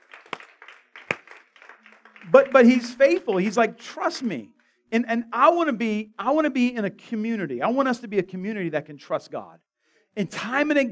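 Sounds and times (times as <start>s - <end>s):
audience clapping: 0.0s - 4.4s
speech: 2.2s - 10.8s.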